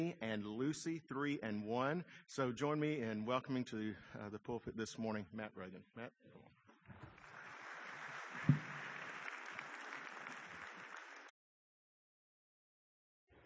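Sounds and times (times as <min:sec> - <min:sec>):
speech: 0:00.0 - 0:07.0
audience clapping: 0:07.1 - 0:11.3.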